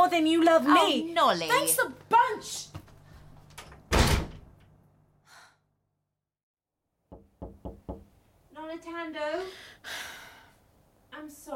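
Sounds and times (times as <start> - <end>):
speech: 0.2 - 2.7, 8.6 - 10.2, 11.2 - 11.5
knocking on a door: 7.1 - 8.1.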